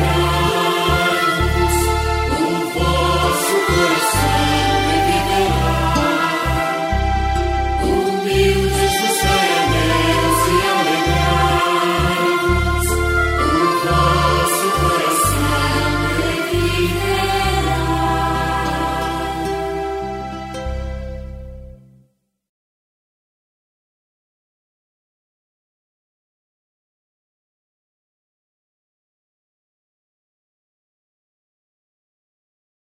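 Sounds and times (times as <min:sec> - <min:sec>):
psalm singing: 0:00.0 - 0:20.8.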